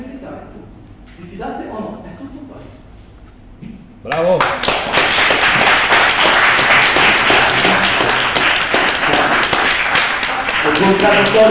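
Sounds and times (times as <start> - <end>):
speech: 1.4 - 2.9, 4.0 - 5.3, 10.8 - 11.5
audience applause: 4.4 - 11.5.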